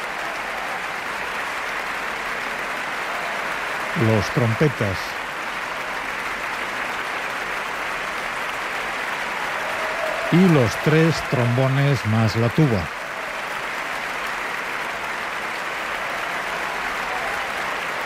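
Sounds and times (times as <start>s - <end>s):
large concert audience ovation applause: 0.0s - 18.0s
speech: 4.0s - 5.2s, 10.3s - 13.0s.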